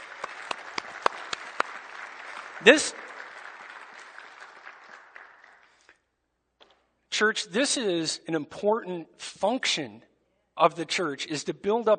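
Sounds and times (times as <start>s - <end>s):
applause: 0.0s - 6.0s
speech: 2.6s - 3.0s, 7.2s - 11.9s.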